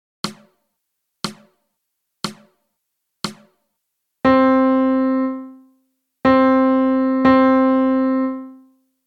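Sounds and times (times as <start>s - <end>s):
melody: 4.3s - 8.7s.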